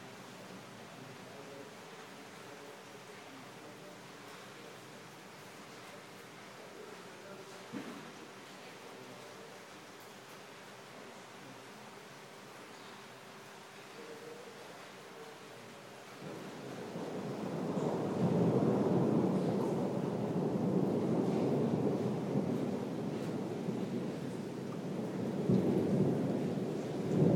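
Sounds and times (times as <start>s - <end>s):
rain falling: 0.0s - 27.3s
louder rumbling wash: 16.2s - 27.3s.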